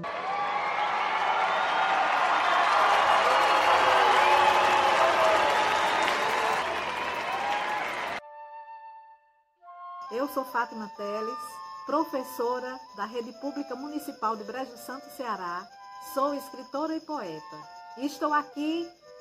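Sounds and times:
cheers and whoops: 0.0s - 8.2s
crowd applauding: 0.0s - 8.2s
speech: 10.3s - 19.0s.

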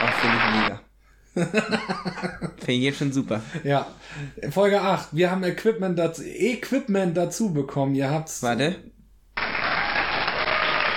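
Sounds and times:
crowd applause sound effect: 0.0s - 0.8s, 9.4s - 10.9s
laughter: 1.4s - 2.7s
speech: 1.4s - 8.9s.

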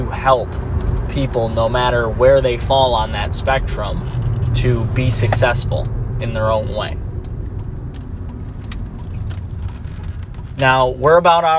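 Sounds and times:
speech: 0.0s - 7.0s, 10.6s - 11.5s
car engine driving into a residential complex: 0.0s - 11.5s
faint clicks and taps: 0.4s - 1.4s, 3.0s - 10.8s.

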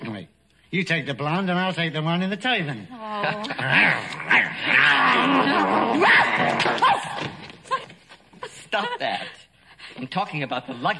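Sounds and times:
speech: 0.7s - 7.4s, 8.7s - 10.9s
man growling and snarling: 2.9s - 6.5s.

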